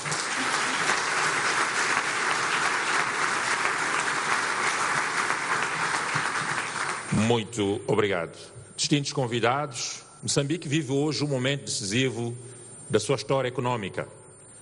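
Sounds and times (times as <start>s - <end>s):
audience applause: 0.0s - 7.3s
speech: 7.2s - 14.2s.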